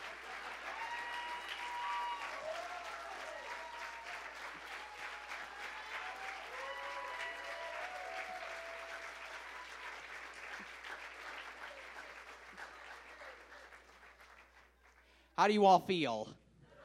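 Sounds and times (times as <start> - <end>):
faint voices and cheers: 0.0 - 9.9
large audience applause: 0.0 - 15.6
speech: 15.4 - 16.4.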